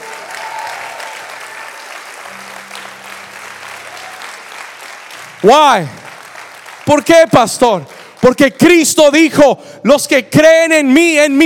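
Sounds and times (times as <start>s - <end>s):
audience applauding loudly: 0.0s - 8.9s
speech: 5.4s - 6.0s, 6.9s - 11.4s.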